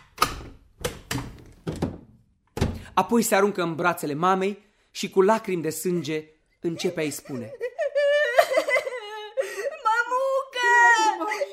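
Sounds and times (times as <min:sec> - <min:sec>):
wooden door being opened: 0:00.0 - 0:02.9
speech: 0:03.0 - 0:07.6
laughter: 0:05.8 - 0:11.5.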